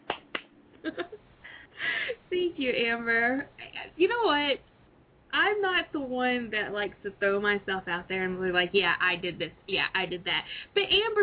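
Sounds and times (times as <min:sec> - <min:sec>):
people clapping: 0:00.0 - 0:00.5
speech: 0:02.4 - 0:04.7, 0:05.3 - 0:11.2.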